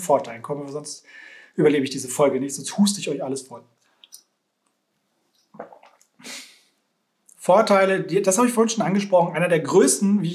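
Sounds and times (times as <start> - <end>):
speech: 0.0 - 3.8, 7.4 - 10.3
person sipping a drink: 5.4 - 6.5.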